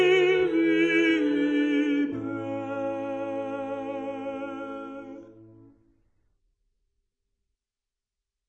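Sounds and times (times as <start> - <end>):
tenor singing: 0.0 - 5.6.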